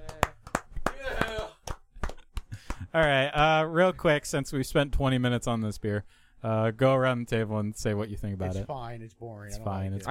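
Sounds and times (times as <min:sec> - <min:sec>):
few people clapping: 0:00.0 - 0:03.3
speech: 0:02.9 - 0:10.0.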